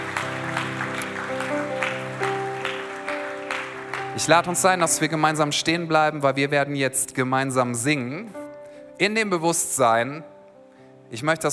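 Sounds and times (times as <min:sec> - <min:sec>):
audience applause: 0:00.0 - 0:05.6
speech: 0:04.2 - 0:08.4, 0:09.0 - 0:10.3, 0:11.1 - 0:11.5.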